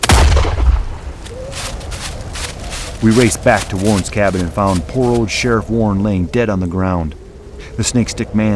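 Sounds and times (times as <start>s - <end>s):
pistol gunshot: 0.0s - 1.1s
deep booming rumble: 0.0s - 1.3s
speech: 3.0s - 7.2s, 7.8s - 8.5s.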